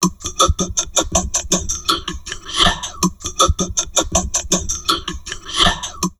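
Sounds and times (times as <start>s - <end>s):
heavily processed drum loops: 0.0s - 6.1s
person talking: 0.0s - 6.1s.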